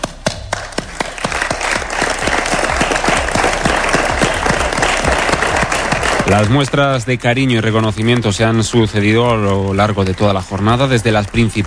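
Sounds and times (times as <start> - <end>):
long applause: 0.0 - 11.6
speech: 6.3 - 11.6.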